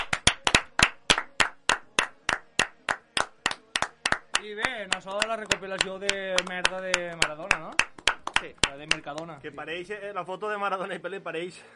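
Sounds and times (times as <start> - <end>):
hands clapping: 0.0 - 9.4
speech: 4.5 - 11.7.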